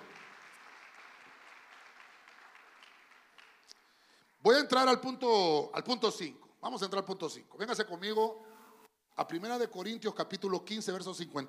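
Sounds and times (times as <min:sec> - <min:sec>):
audience applauding: 0:00.0 - 0:04.5
speech: 0:04.4 - 0:08.5, 0:09.2 - 0:11.4.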